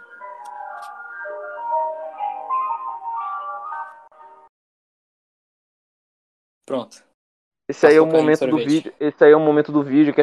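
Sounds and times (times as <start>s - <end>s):
ice cream cart jingle playing an electronic melody: 0.0s - 4.5s
speech: 6.7s - 7.1s, 7.7s - 10.2s.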